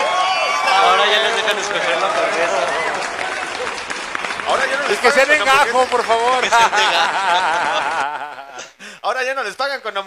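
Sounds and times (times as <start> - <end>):
applause: 0.0 - 8.0
laughter: 0.7 - 8.8
speech: 1.5 - 2.8, 4.6 - 8.4, 9.0 - 10.0.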